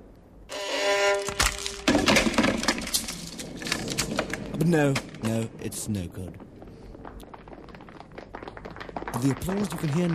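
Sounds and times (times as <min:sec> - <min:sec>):
violin being trodden on and splintering: 0:00.5 - 0:04.3
speech: 0:04.6 - 0:06.4, 0:09.2 - 0:10.1.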